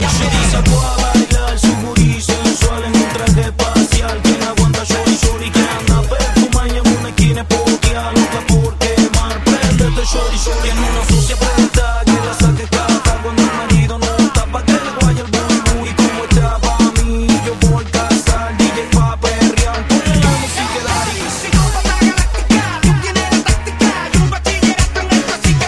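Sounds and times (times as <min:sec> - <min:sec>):
reggaeton remix: 0:00.0 - 0:25.6.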